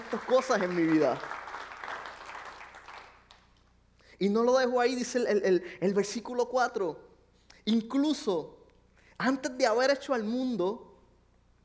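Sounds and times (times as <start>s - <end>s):
audience applauding: 0.0s - 3.6s
speech: 0.1s - 1.4s, 4.2s - 8.6s, 9.2s - 10.9s.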